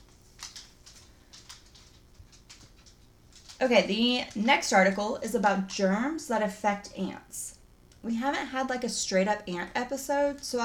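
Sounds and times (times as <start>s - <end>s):
dog's recently trimmed nails clicking on the floor: 0.4s - 3.6s
speech: 3.6s - 7.4s, 8.0s - 10.6s.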